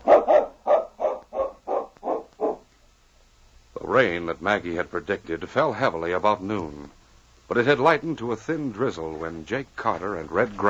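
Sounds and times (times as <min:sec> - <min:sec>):
dog barking: 0:00.0 - 0:02.7
speech: 0:03.9 - 0:10.6.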